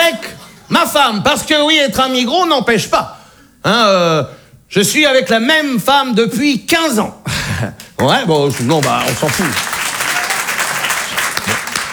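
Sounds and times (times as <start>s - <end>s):
speech: 0.7s - 9.7s
crowd applause: 7.8s - 11.9s.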